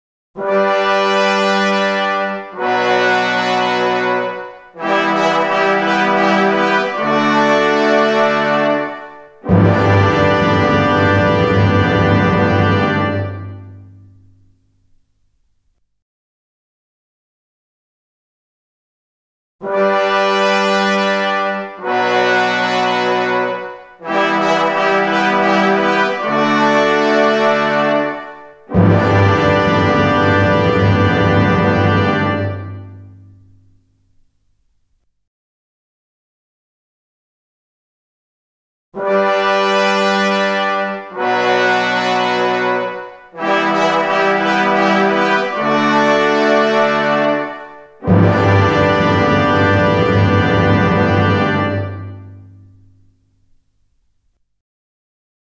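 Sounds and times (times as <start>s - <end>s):
fanfare: 0.4s - 15.0s, 19.6s - 34.3s, 39.0s - 53.6s.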